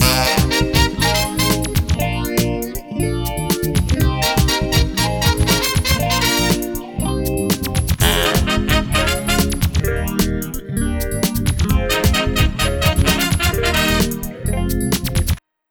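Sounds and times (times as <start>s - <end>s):
groove music: 0.0s - 15.4s.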